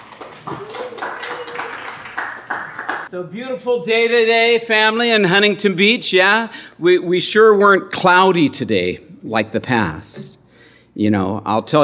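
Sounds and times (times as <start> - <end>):
audience applause welcoming a speaker at an evening study in Huntington Beach: 0.0 - 3.1
speech: 3.1 - 10.4, 11.0 - 11.8.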